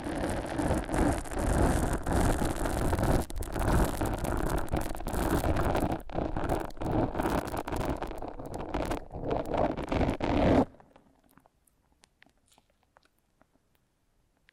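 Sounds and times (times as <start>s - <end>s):
foam being massaged and squeezed: 0.0s - 10.8s.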